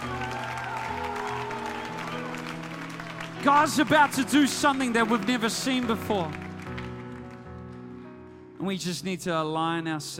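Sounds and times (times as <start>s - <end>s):
audience clapping: 0.0s - 7.9s
sustained keyboard chords: 0.0s - 8.8s
speech: 3.4s - 6.4s, 8.6s - 10.1s.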